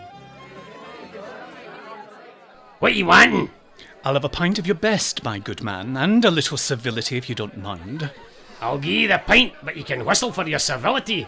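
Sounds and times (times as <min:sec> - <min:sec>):
busy pub crowd chatter: 0:00.0 - 0:11.2
laughter: 0:00.6 - 0:03.9, 0:07.1 - 0:11.2
speech: 0:02.8 - 0:11.2.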